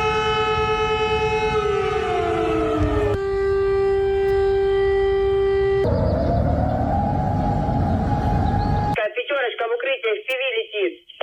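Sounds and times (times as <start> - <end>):
air raid siren wailing in Russia: 0.0 - 9.0
voice over loudspeaker: 9.0 - 11.2.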